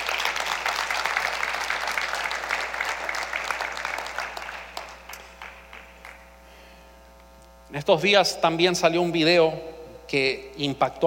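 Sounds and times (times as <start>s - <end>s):
audience applause: 0.0s - 6.2s
speech: 7.8s - 11.0s.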